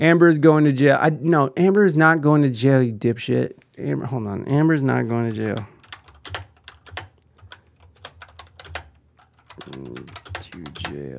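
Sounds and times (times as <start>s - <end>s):
speech: 0.0s - 5.7s, 9.6s - 11.1s
typing on a computer keyboard: 5.3s - 11.0s.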